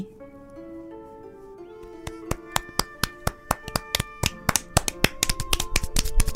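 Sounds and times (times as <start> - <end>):
soft sustained music: 0.0 - 6.3
classroom applause spreading through children: 2.1 - 6.3.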